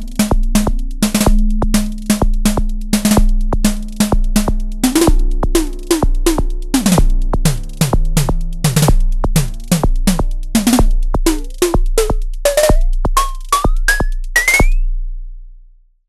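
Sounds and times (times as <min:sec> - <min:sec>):
drum machine snare: 0:00.0 - 0:14.9.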